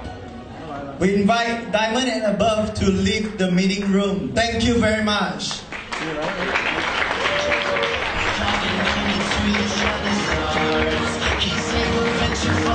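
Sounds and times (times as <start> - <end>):
speech: 0.7 - 6.8
round of applause: 5.5 - 12.7.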